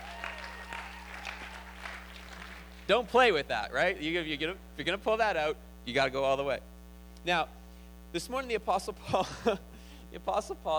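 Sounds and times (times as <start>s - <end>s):
audience applause: 0.0s - 2.9s
speech: 2.9s - 10.7s.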